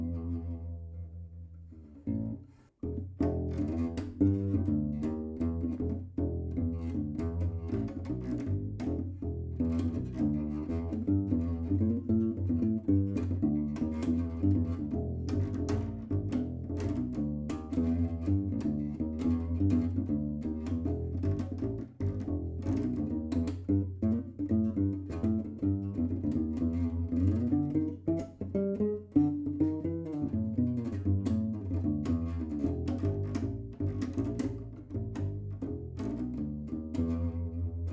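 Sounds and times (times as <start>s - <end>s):
bass guitar recorded by microphone only: 0.0s - 37.9s.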